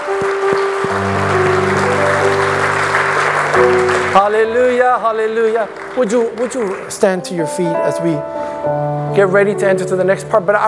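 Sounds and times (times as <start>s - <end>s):
audience clapping hands: 0.0s - 7.4s
speech: 4.2s - 10.6s.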